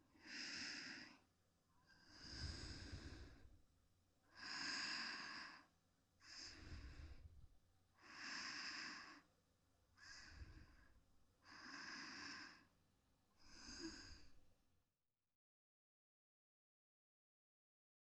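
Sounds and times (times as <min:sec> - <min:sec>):
sleeping breath: 0:00.2 - 0:03.5, 0:04.3 - 0:07.4, 0:08.0 - 0:09.3, 0:10.0 - 0:12.7, 0:13.4 - 0:14.5.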